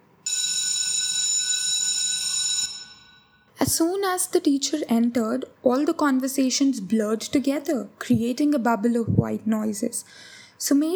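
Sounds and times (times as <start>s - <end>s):
classroom bell ringing: 0.2s - 3.5s
speech: 3.7s - 10.9s.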